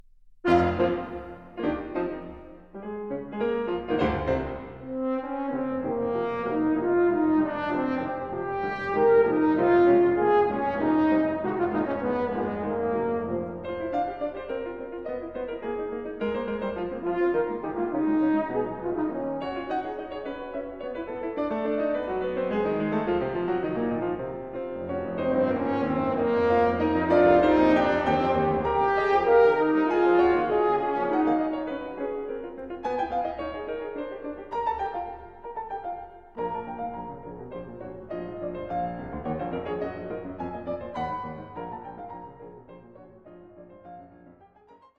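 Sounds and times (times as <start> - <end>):
sonata for horn and piano: 0.4 - 44.9.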